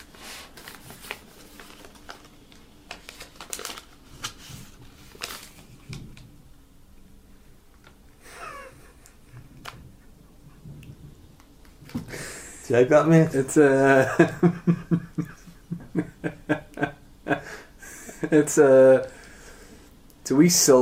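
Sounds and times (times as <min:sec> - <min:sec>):
envelope being opened: 0:00.0 - 0:06.3
laughter: 0:08.3 - 0:09.2, 0:13.8 - 0:18.5
speech: 0:12.7 - 0:14.9, 0:18.3 - 0:19.2, 0:20.3 - 0:20.8.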